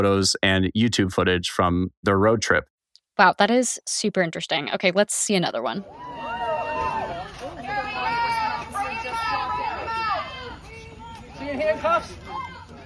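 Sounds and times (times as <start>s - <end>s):
speech: 0.0s - 6.1s
crowd babble outside a house: 5.8s - 12.8s
people shouting: 5.9s - 12.8s.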